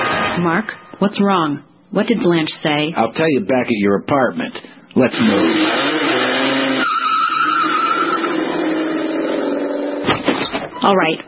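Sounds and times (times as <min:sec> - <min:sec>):
speech: 0:00.4 - 0:06.0, 0:10.8 - 0:11.2
car roaring driven fast and recklessly: 0:05.1 - 0:10.1
car tires skidding and squealing driven fast: 0:05.2 - 0:10.1.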